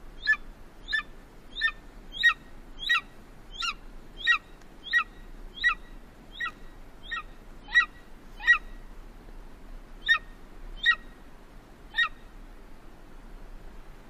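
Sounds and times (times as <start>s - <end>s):
golden eagle sharp yelping calls: 0.2s - 8.8s, 10.0s - 11.1s, 11.9s - 12.2s.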